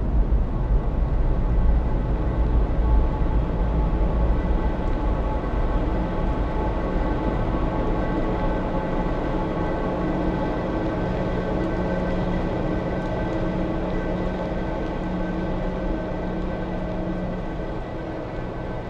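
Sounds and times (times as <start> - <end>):
sci-fi soundscape sound effects: 0.2 - 18.8.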